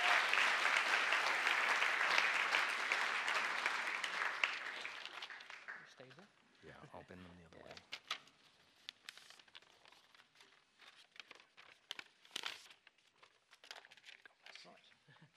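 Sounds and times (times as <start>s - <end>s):
crowd clapping: 0.0s - 6.3s.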